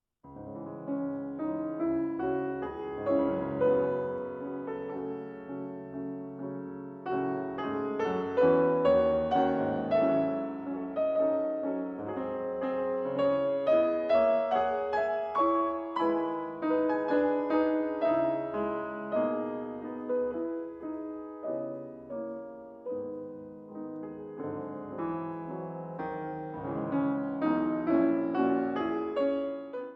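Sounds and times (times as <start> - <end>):
etude in C sharp minor: 0.6 - 29.9.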